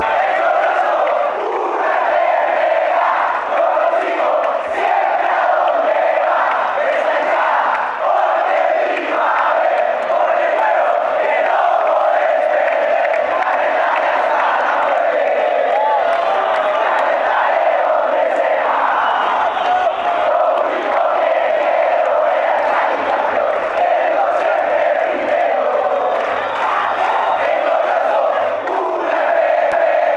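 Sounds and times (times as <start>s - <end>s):
chanting: 0.0s - 30.1s.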